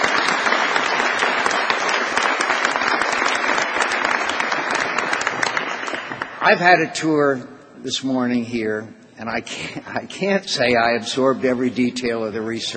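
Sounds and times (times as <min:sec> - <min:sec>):
audience applause: 0:00.0 - 0:06.6
speech: 0:06.4 - 0:12.7.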